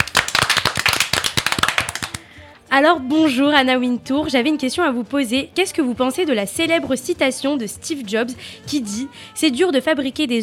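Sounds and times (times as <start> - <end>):
studio audience applause on a TV set welcoming a guest: 0.0 - 2.2
speech: 2.8 - 10.4.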